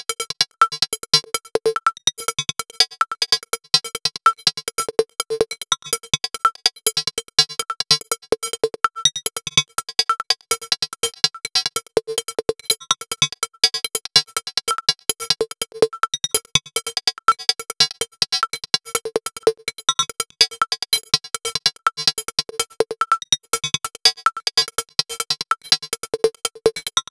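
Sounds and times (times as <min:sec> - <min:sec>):
percussion: 0:00.0 - 0:27.1.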